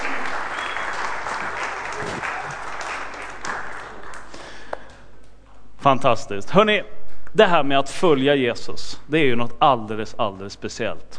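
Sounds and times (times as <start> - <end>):
audience applause: 0.0 - 4.7
speech: 5.8 - 11.1.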